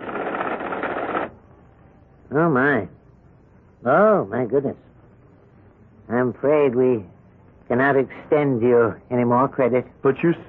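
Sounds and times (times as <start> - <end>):
computer-driven typewriter printing out: 0.0 - 1.3
speech: 2.3 - 3.0, 3.8 - 4.9, 6.1 - 7.1, 7.7 - 10.4.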